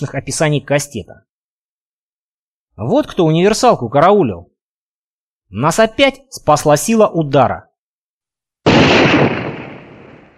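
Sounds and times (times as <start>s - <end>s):
speech: 0.0s - 1.3s, 2.8s - 4.5s, 5.5s - 7.7s
heavy-caliber gun firing: 8.7s - 10.3s.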